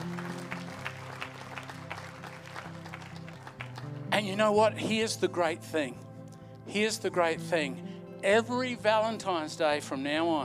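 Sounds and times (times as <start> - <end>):
audience clapping: 0.0 - 4.4
speech: 4.2 - 6.0, 6.7 - 10.4.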